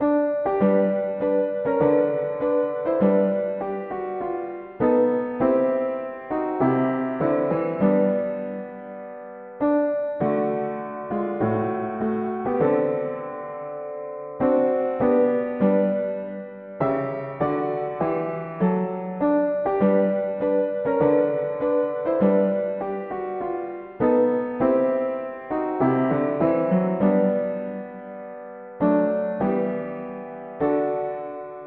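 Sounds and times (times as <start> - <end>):
mono piano: 0.0 - 31.6.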